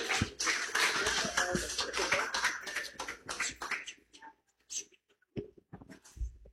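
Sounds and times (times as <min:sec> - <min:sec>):
audience clapping: 0:00.0 - 0:04.2.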